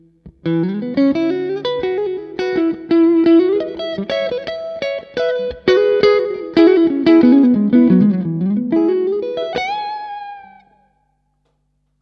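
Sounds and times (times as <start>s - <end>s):
electric guitar on neck and middle pickups: 0.0s - 11.1s.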